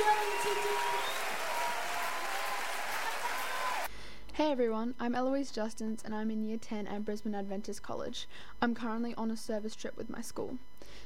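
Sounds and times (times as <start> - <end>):
church audience applauding: 0.0 - 3.9
speech: 4.4 - 11.0.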